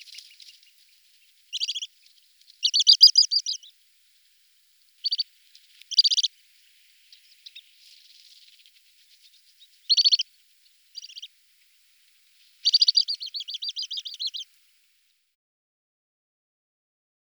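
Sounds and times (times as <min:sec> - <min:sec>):
little stint calling: 0:01.5 - 0:01.9, 0:02.6 - 0:03.7, 0:05.0 - 0:05.3, 0:05.8 - 0:06.3, 0:09.9 - 0:10.3, 0:10.9 - 0:11.3, 0:12.5 - 0:14.5.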